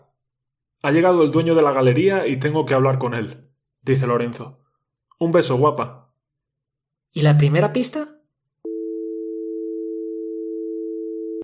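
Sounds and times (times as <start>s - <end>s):
speech: 0.8s - 4.6s, 5.2s - 6.0s, 7.1s - 8.2s
telephone line tone after a hung-up call: 8.6s - 11.4s.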